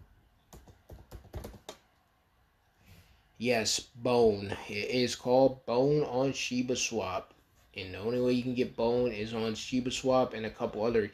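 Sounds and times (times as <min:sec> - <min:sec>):
computer keyboard typing: 0:00.5 - 0:01.8
speech: 0:03.4 - 0:11.1.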